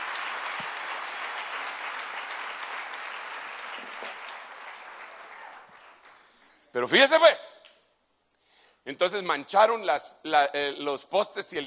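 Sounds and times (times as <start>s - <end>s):
large crowd applauding loudly: 0.0s - 6.4s
speech: 6.8s - 7.6s, 8.8s - 11.6s.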